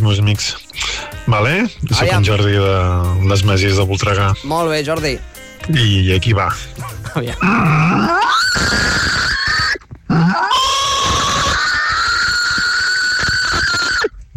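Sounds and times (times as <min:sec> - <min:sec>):
speech: 0:00.1 - 0:09.4
person imitating a pig or wild boar: 0:07.4 - 0:14.2.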